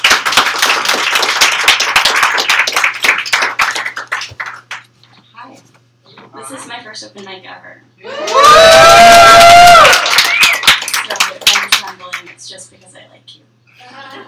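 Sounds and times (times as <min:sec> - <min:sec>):
small audience clapping at an open mic night: 0:00.0 - 0:05.1, 0:08.2 - 0:12.4
speech: 0:07.2 - 0:08.4.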